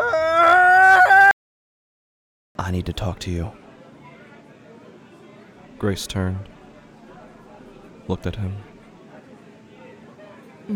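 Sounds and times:
man screaming: 0.0s - 1.4s
speech: 2.7s - 3.6s, 5.8s - 6.5s, 8.1s - 8.7s.

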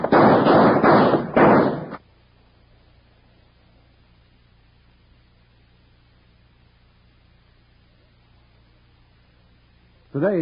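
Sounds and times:
gunshots in an old-time western radio drama: 0.0s - 2.0s.

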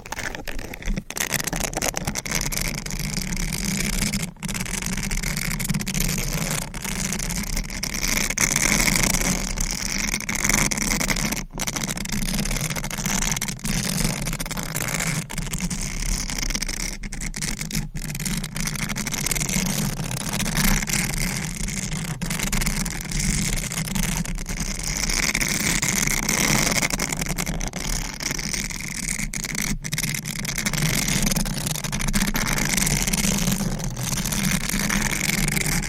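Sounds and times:
sharp crinkles: 0.0s - 11.8s, 19.4s - 35.8s
sponge rubbing and squishing against a microphone: 0.0s - 35.8s.

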